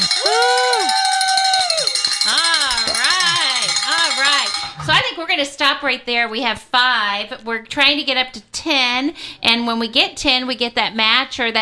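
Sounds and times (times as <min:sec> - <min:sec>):
people whooping and cheering in celebration: 0:00.0 - 0:03.7
bell ringing in celebration: 0:00.0 - 0:05.1
speech: 0:05.2 - 0:11.6.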